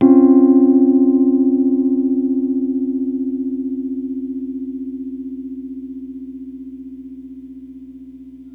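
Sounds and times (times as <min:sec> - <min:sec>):
diminished third chord hits: 0:00.0 - 0:04.4.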